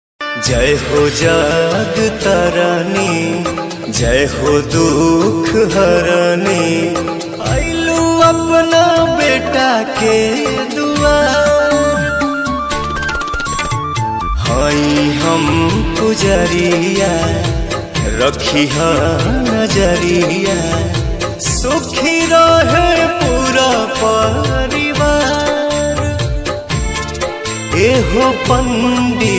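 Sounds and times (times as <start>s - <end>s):
Bhojpuri devotional ringtone song: 0.2s - 29.3s.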